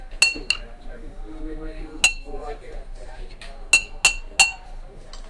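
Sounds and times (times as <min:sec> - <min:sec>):
ice clinking in a glass: 0:00.2 - 0:00.6, 0:02.0 - 0:02.3, 0:03.8 - 0:04.6.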